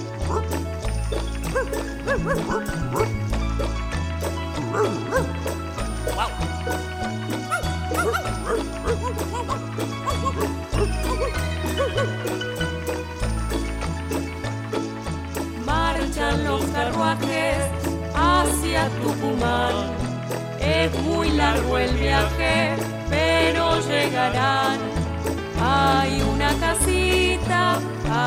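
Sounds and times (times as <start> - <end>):
bouncy song with repeating low bass line: 0.0 - 28.2
speech: 1.1 - 3.8, 4.7 - 6.9, 20.8 - 25.0
dog barks and yips: 1.5 - 3.2, 4.7 - 5.4, 7.5 - 12.2.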